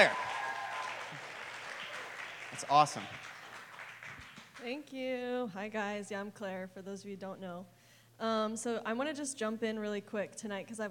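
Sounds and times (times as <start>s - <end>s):
speech: 0.0s - 0.2s, 2.6s - 3.3s, 4.6s - 10.8s
audience applause: 0.0s - 4.7s.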